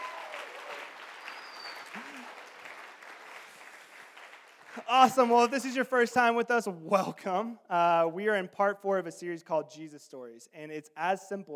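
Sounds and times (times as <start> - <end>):
audience applause: 0.0 - 5.1
whistle-like tone: 1.2 - 1.9
speech: 4.8 - 11.5.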